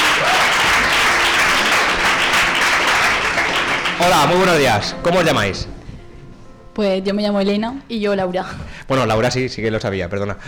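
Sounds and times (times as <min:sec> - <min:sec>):
audience applause: 0:00.0 - 0:05.4
speech: 0:04.0 - 0:05.8, 0:06.8 - 0:10.4.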